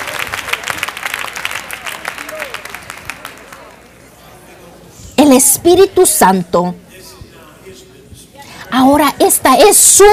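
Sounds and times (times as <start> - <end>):
audience applause: 0.0 - 3.8
speech: 5.3 - 6.8, 8.8 - 10.1.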